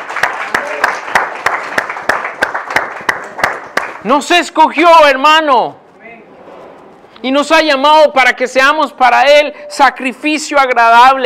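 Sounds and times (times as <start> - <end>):
audience applause: 0.0 - 4.0
speech: 4.0 - 5.8, 7.2 - 11.2.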